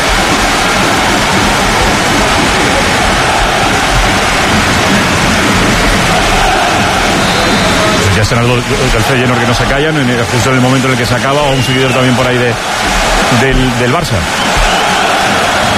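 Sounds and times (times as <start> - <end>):
rain falling: 0.0 - 15.7
speech: 8.2 - 14.5.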